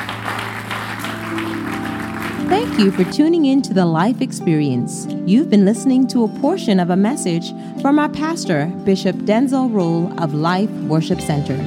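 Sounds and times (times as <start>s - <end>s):
audience clapping hands: 0.0s - 3.2s
speech: 2.5s - 11.6s.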